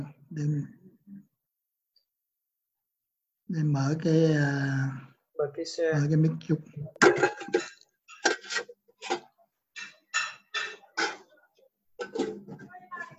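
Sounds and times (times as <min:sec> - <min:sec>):
speech: 0:00.0 - 0:00.8, 0:03.5 - 0:07.7
pots and pans clinking: 0:07.0 - 0:11.4, 0:12.0 - 0:13.1.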